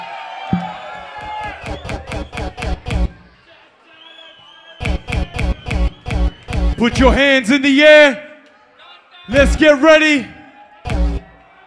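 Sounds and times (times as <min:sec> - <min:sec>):
live crowd cheering and shouting: 0:00.0 - 0:11.6
steady rhythmic pounding beat: 0:00.5 - 0:03.2, 0:04.8 - 0:07.3, 0:09.3 - 0:09.8, 0:10.9 - 0:11.4
speech: 0:06.8 - 0:08.2, 0:09.3 - 0:10.4.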